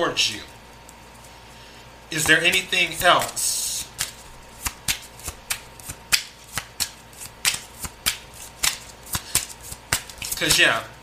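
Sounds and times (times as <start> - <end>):
speech: 0.0 - 0.5, 2.1 - 3.6, 10.4 - 11.0
tarot cards being shuffled: 2.2 - 10.7.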